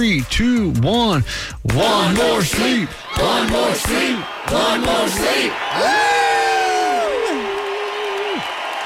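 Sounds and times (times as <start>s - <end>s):
speech: 0.0s - 6.2s
small group cheering loudly with high whoops: 2.8s - 8.8s.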